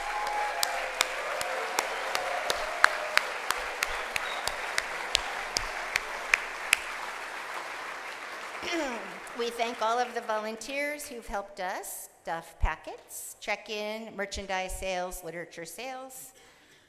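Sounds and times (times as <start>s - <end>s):
crowd murmur: 0.0s - 7.7s
sharp claps: 0.0s - 10.4s
speech: 8.7s - 16.4s.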